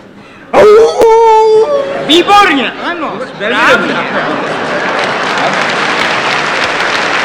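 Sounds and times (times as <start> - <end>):
man imitating a jackal howl: 0.5 - 1.9
laughter: 1.7 - 7.1
speech: 2.1 - 4.8, 5.4 - 5.7.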